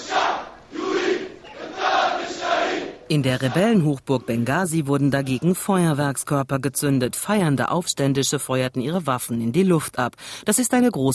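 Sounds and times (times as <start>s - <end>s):
demonstrators in Tripoli chanting, demanding revenge: 0.0s - 4.4s
speech: 3.1s - 11.1s.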